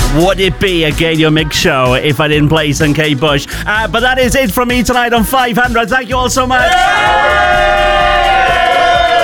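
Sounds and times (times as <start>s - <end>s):
speech: 0.2s - 7.9s
party crowd cheering and whooping in a radio studio: 6.6s - 9.2s.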